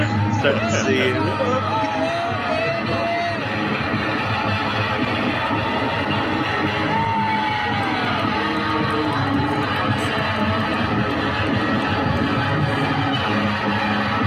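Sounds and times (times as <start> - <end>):
crowd whooping and yelling: 0.0 - 14.2
distorted guitar in a live concert: 0.0 - 14.2
speech: 0.4 - 1.9.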